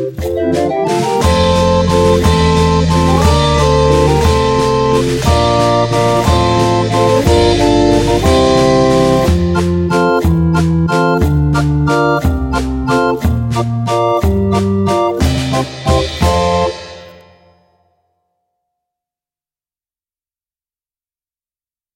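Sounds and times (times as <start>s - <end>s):
karaoke singing: 0.1s - 16.8s.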